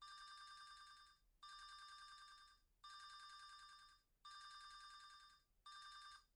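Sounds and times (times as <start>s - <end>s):
telephone: 0.0s - 6.3s.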